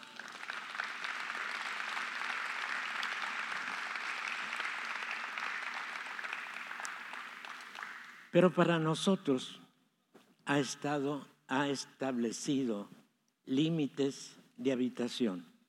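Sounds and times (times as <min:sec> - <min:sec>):
audience applause: 0:00.0 - 0:08.3
speech: 0:08.4 - 0:09.6, 0:10.5 - 0:15.5.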